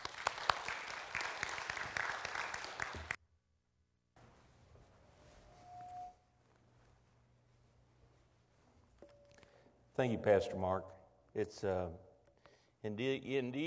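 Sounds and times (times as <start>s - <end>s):
church congregation applauding a visiting speaker from the Gideons: 0.0s - 3.2s
speech: 10.0s - 12.1s, 12.8s - 13.6s.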